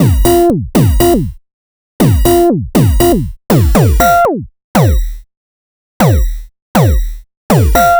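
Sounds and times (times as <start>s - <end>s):
modular electronica beat: 0.0s - 1.4s, 2.0s - 4.2s, 6.8s - 7.9s.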